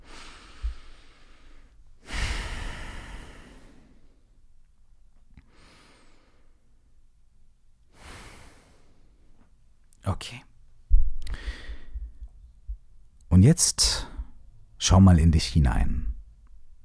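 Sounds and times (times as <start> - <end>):
deep breathing during a guided relaxation exercise: 0.0 - 4.4, 5.4 - 6.7, 7.9 - 9.5, 11.1 - 12.5
speech: 10.2 - 10.5, 13.4 - 14.1, 14.8 - 16.1.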